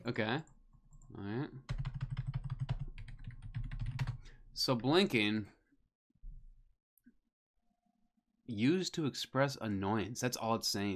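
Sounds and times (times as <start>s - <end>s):
speech: 0.1s - 0.5s, 1.1s - 1.8s, 4.6s - 5.6s, 8.5s - 10.9s
typing on a computer keyboard to enter a search word: 1.7s - 4.3s.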